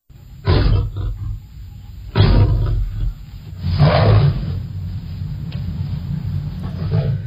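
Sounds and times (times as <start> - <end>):
fearsome lion roaring: 0.4 - 1.5, 2.1 - 4.7.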